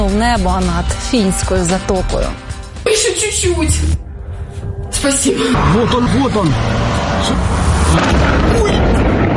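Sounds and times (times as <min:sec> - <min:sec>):
speech: 0:00.1 - 0:04.0, 0:05.0 - 0:09.0
drone strike explosions rumbling: 0:05.6 - 0:09.3.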